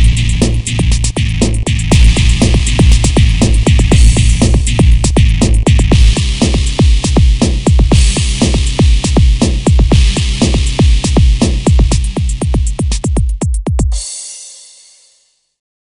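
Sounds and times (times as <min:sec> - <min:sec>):
kicking bass: 0:00.0 - 0:14.0.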